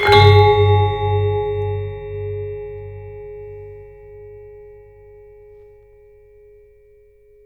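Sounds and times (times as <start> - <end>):
gamelan hits: 0.0 - 5.4.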